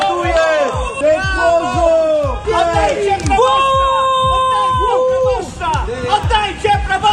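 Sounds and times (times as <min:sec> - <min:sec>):
protesting crowd shouting and chanting: 0:00.0 - 0:07.1.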